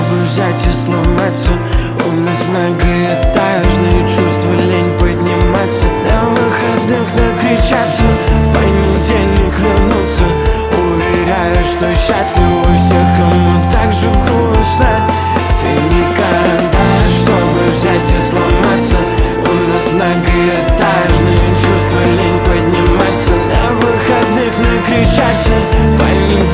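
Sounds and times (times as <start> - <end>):
acoustic music: 0.0 - 26.5.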